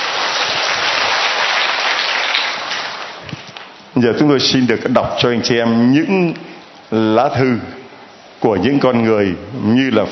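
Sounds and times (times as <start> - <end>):
audience applause: 0.0 - 3.5
speech: 4.0 - 7.8, 8.4 - 10.1.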